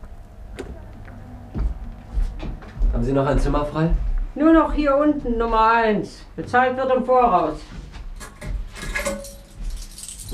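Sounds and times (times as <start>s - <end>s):
low hum: 0.0s - 10.3s
speech: 3.0s - 7.8s
hotel room keys jingling as handed over at a front desk: 8.2s - 10.3s.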